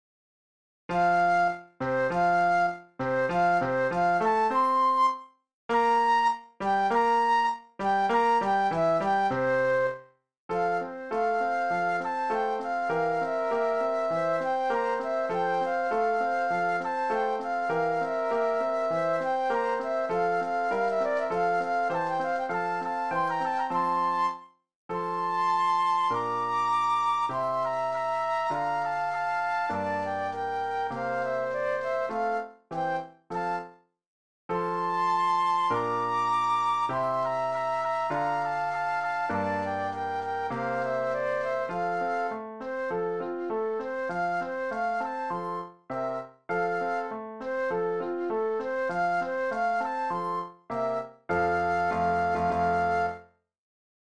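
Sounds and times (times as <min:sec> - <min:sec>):
flute duet: 0:00.9 - 0:33.8, 0:34.5 - 0:53.4
piano: 0:00.9 - 0:33.8, 0:34.5 - 0:53.4.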